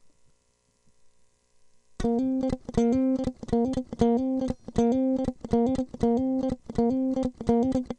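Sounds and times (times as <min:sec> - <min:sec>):
guitar: 0:02.0 - 0:07.9.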